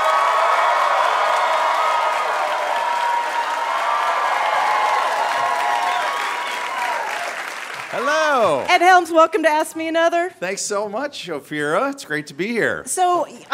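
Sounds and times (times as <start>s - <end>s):
studio audience shouts and whoops: 0.0s - 7.4s
live quiz show studio audience clapping: 0.0s - 9.0s
speech: 8.1s - 13.5s.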